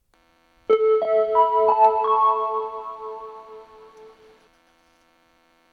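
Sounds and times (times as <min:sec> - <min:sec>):
station ambience in Hirono: 0:00.7 - 0:04.5.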